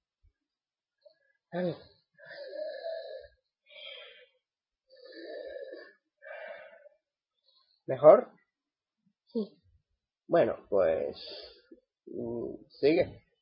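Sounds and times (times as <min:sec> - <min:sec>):
speech: 0:01.5 - 0:01.9, 0:07.9 - 0:08.4, 0:09.3 - 0:09.6, 0:10.3 - 0:11.5, 0:12.1 - 0:13.2
nervous woman taking deep breaths to calm herself: 0:02.2 - 0:04.4, 0:05.0 - 0:07.8.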